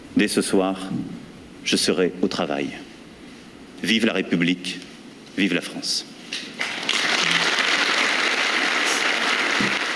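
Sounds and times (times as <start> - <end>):
speech: 0.2 - 2.9, 3.8 - 6.6
audience applause: 6.6 - 9.9.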